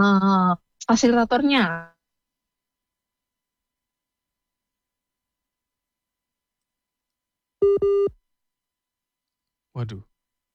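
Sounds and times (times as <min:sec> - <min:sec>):
speech: 0:00.0 - 0:01.9, 0:07.7 - 0:08.2, 0:09.8 - 0:10.1
phone line beeps while reconnecting a radio call-in listener: 0:07.6 - 0:08.1.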